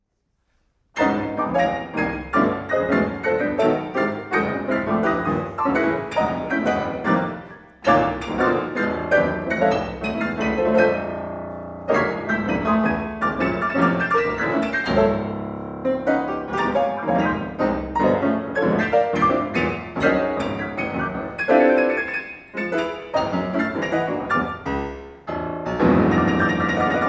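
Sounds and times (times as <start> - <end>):
blues piano roll: 0.9 - 27.0.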